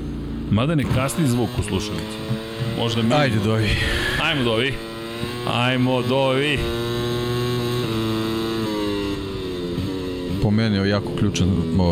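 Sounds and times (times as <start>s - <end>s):
motorcycle engines whining in a racing video game: 0.0s - 11.9s
speech: 0.5s - 7.3s, 10.4s - 11.9s.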